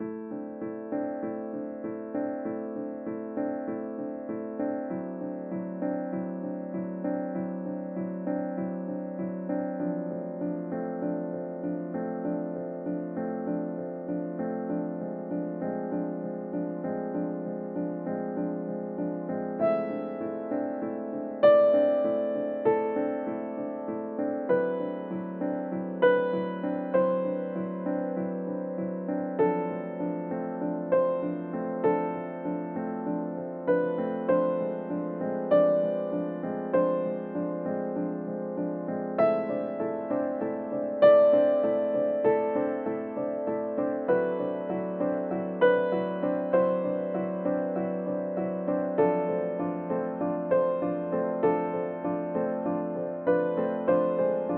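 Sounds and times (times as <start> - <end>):
piano playing in a lesson: 0.0 - 54.5.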